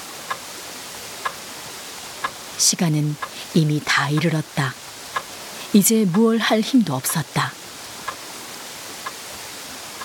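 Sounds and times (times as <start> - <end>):
speech: 2.6 - 4.8, 5.7 - 7.6
clock second hand ticking: 4.1 - 4.4.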